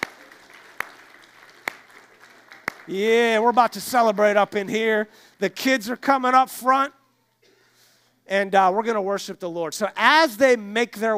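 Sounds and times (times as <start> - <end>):
audience applauding: 0.0 - 5.5
speech: 2.9 - 7.0, 8.3 - 11.1.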